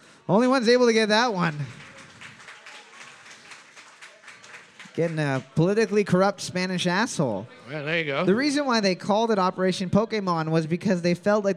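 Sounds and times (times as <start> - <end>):
speech: 0.3 - 1.8, 5.0 - 11.5
audience applause: 1.2 - 5.9.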